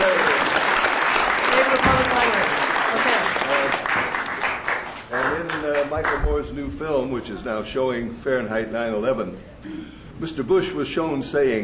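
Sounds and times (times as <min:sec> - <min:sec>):
audience applause: 0:00.0 - 0:06.2
speech: 0:05.9 - 0:11.6.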